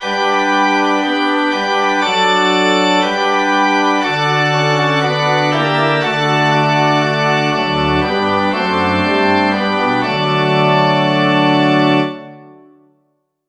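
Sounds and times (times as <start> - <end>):
musical prelude: 0.0 - 12.8.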